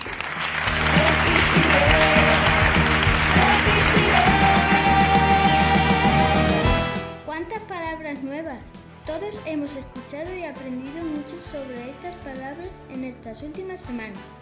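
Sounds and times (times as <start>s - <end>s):
warm applause: 0.0s - 7.0s
speech: 9.7s - 14.4s.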